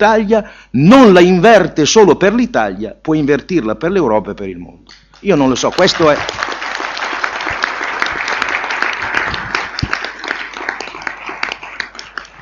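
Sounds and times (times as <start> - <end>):
speech: 0.0 - 6.5
audience applause: 5.7 - 12.4.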